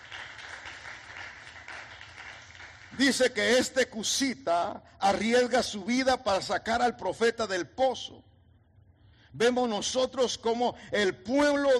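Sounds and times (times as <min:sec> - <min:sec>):
church congregation applause offered as praise to God: 0:00.0 - 0:03.7
speech: 0:02.9 - 0:08.3, 0:09.3 - 0:11.7.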